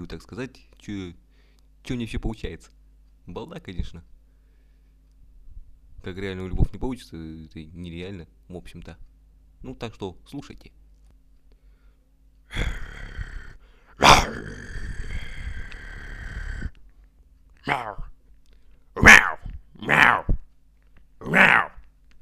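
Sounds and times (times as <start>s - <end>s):
speech: 0.1s - 1.2s, 1.8s - 4.1s, 6.0s - 10.8s, 17.6s - 18.1s
person imitating a small kitten with their voice: 12.5s - 16.8s, 17.6s - 18.2s, 19.0s - 20.5s, 21.2s - 21.9s.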